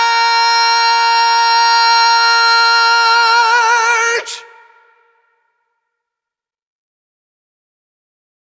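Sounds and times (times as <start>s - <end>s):
predominant baritone voice: 0.0s - 5.4s.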